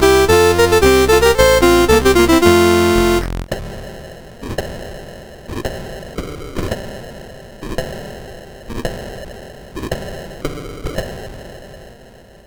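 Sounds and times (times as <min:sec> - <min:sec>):
march played on CSG8580R5 chip: 0:00.0 - 0:03.5.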